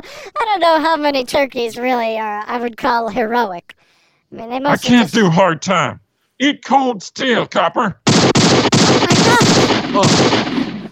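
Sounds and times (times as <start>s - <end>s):
speech: 0.5s - 8.0s, 9.4s - 10.9s
gunshot sound effect: 8.1s - 10.9s.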